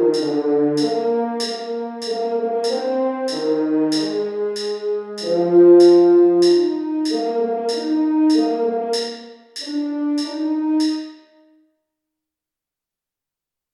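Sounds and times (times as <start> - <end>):
French horn: 0.0 - 11.2.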